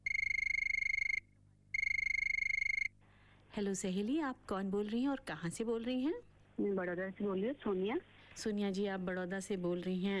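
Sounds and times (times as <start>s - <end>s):
telephone ringing: 0.0s - 3.0s
speech: 3.6s - 10.1s.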